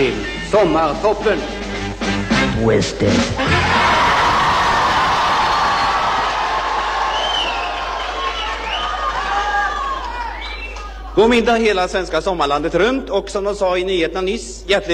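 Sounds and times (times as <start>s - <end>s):
speech: 0.1s - 1.6s, 2.6s - 4.0s, 11.2s - 14.9s
crowd of young people cheering and shouting: 3.4s - 11.2s
whistles: 7.0s - 11.2s.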